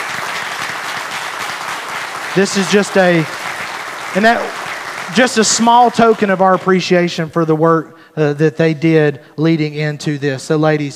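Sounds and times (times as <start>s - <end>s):
audience round of applause: 0.0s - 6.8s
speech: 2.4s - 3.4s, 4.1s - 10.9s.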